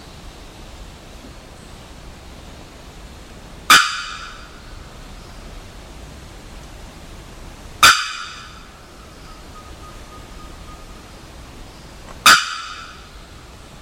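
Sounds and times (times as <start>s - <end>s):
Bearded Bellbird calling: 3.7s - 5.1s, 7.8s - 13.6s.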